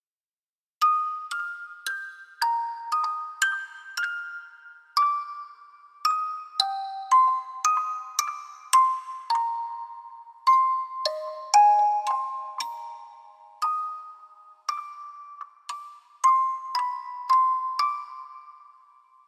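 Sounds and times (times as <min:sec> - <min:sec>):
music box: 0:00.8 - 0:19.2.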